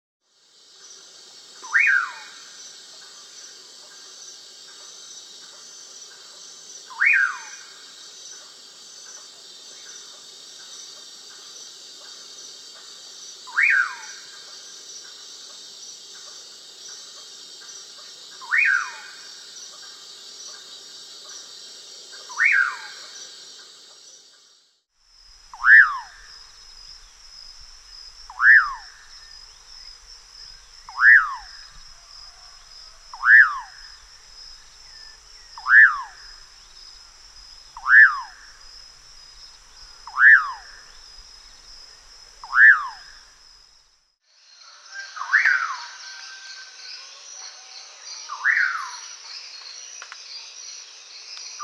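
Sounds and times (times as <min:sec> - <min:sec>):
common pauraque calling: 0:01.6 - 0:02.4, 0:13.5 - 0:14.4, 0:18.4 - 0:19.3, 0:22.2 - 0:23.2, 0:25.4 - 0:43.5, 0:48.3 - 0:49.0.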